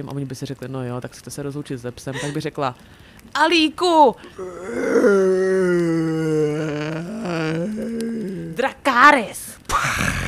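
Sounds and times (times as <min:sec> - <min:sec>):
speech: 0:00.0 - 0:07.9, 0:08.6 - 0:09.4
person imitating a dragon's roar: 0:04.3 - 0:08.6, 0:09.7 - 0:10.2.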